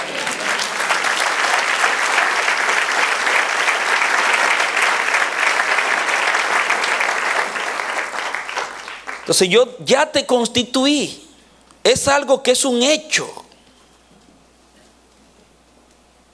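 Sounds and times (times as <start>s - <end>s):
audience applause: 0.0s - 9.4s
speech: 9.3s - 11.2s, 11.8s - 13.4s.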